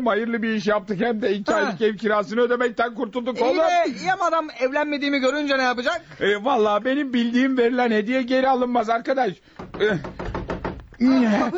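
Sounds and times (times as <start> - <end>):
speech: 0.0 - 10.2, 11.0 - 11.5
knocking on a door in a Turkish comedy scene: 9.6 - 11.0.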